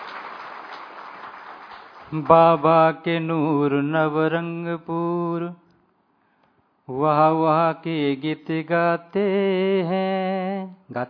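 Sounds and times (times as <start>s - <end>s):
audience applause welcoming a guest at a gathering: 0.0s - 2.8s
speech: 2.1s - 5.6s, 6.9s - 11.0s.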